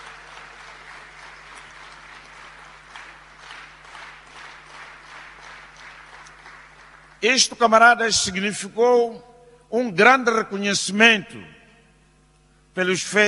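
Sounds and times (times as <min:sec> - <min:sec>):
audience applause: 0:00.0 - 0:07.4
speech: 0:07.2 - 0:11.6, 0:12.8 - 0:13.2.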